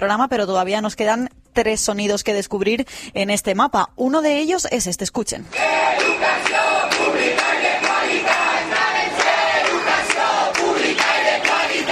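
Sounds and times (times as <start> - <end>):
speech: 0.0 - 7.5
group of teachers shouting at a protest: 5.5 - 11.9.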